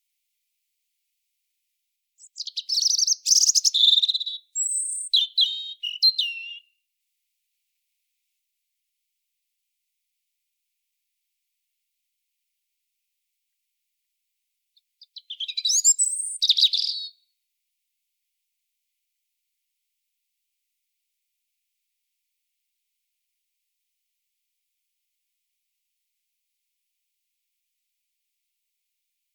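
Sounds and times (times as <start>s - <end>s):
European robin singing: 2.2s - 6.8s, 14.8s - 17.2s.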